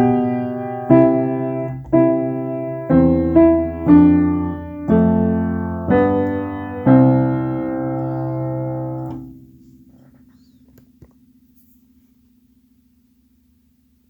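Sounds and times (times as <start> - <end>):
piano playing a Christmas carol: 0.0 - 9.5.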